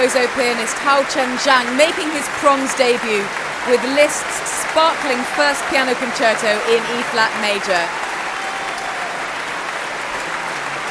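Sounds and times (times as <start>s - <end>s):
speech: 0.0s - 8.0s
large concert audience applause: 0.0s - 10.8s.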